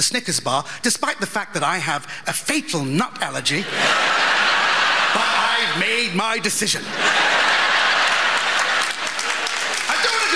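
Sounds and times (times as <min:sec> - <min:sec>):
speech: 0:00.0 - 0:04.4, 0:05.2 - 0:07.5
laughter: 0:03.6 - 0:10.3
comedy show audience applause: 0:07.1 - 0:10.3.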